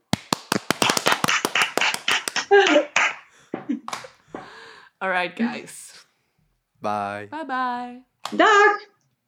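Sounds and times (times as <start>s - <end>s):
hand clapping: 0.0s - 4.5s
speech: 5.0s - 5.9s, 6.8s - 8.9s.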